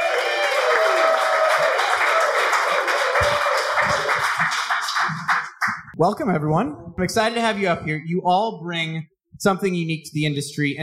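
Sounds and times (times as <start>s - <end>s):
audience applause for a speaker at an evening industry event: 0.0s - 5.9s
speech: 6.0s - 10.8s.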